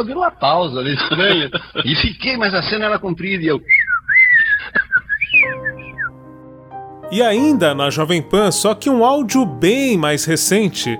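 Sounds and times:
speech: 0.0 - 3.8, 7.1 - 10.9
laughter: 0.8 - 2.2, 4.3 - 5.6
person whistling an imitation of little birds: 3.7 - 6.2.

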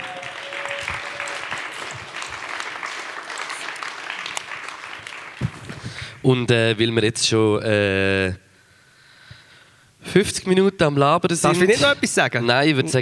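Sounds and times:
applause: 0.0 - 6.2
speech: 6.2 - 8.4, 10.1 - 13.0.

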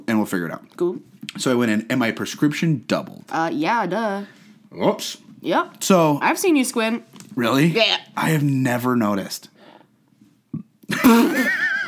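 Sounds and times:
speech: 0.2 - 9.5, 11.0 - 11.6
person burping: 10.6 - 11.7.

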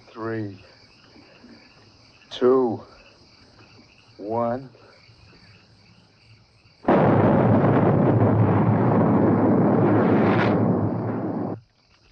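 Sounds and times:
speech: 0.2 - 0.7, 2.4 - 2.9, 4.2 - 4.8
house blowing up and catching fire: 6.9 - 11.6.

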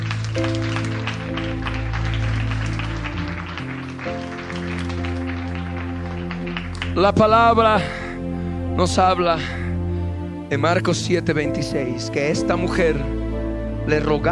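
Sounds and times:
crowd clapping: 0.0 - 7.9
sustained keyboard or organ chords: 0.0 - 14.3
speech: 7.0 - 8.0, 8.8 - 9.6, 10.5 - 13.2, 13.8 - 14.3.

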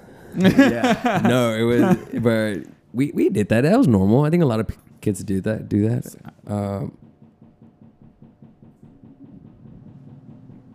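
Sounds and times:
laughter: 0.4 - 2.7
speech: 0.4 - 7.0
washing machine knocking: 0.4 - 10.7.

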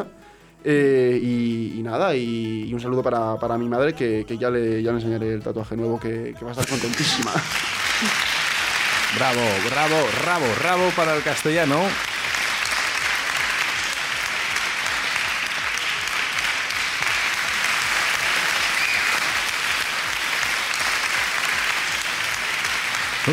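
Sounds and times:
speech: 0.0 - 8.3, 9.1 - 12.1
laughter: 6.5 - 11.9, 22.8 - 23.3
audience applause: 6.6 - 23.3.

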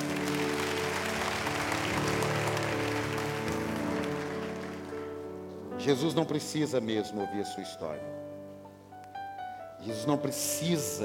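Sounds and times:
audience applause: 0.0 - 5.2
speech: 5.8 - 8.3, 9.8 - 11.0.

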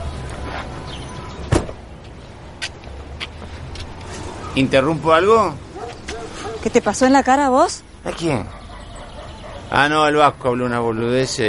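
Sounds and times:
car arriving: 0.0 - 11.4
car door opening and closing: 1.4 - 1.9
speech: 4.6 - 5.6, 6.6 - 8.6, 9.7 - 11.4.

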